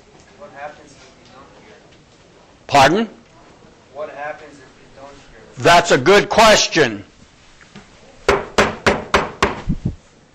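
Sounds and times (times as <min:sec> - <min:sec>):
speech: 0:00.4 - 0:02.0, 0:02.7 - 0:03.2, 0:04.0 - 0:07.1
knocking on a door: 0:08.3 - 0:09.7.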